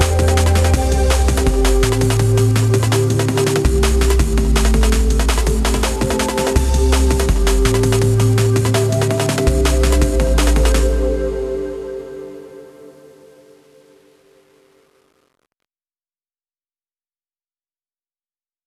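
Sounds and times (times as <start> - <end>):
ambient jungle music made with Korg Gadget: 0.0 - 14.9.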